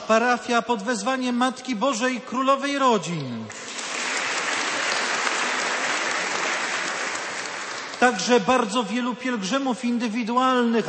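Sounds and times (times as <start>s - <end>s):
speech: 0.1s - 3.7s, 8.0s - 10.8s
audience applause: 3.5s - 8.4s.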